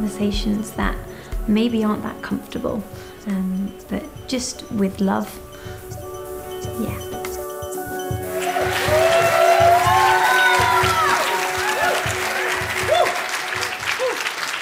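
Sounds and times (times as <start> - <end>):
speech: 0.1 - 6.0, 6.7 - 7.1
whoops and cheers: 8.2 - 14.5
audience applause: 8.2 - 14.6.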